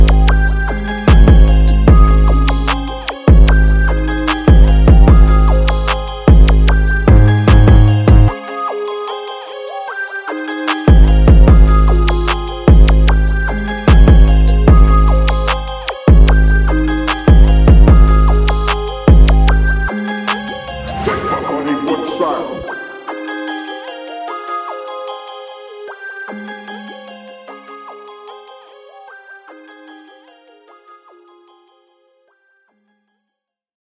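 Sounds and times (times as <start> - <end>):
trap beat in G major: 0.0 - 8.4, 9.9 - 22.8.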